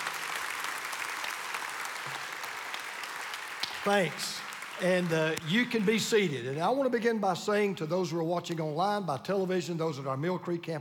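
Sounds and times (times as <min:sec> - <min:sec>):
audience applause: 0:00.0 - 0:06.6
speech: 0:03.8 - 0:10.7.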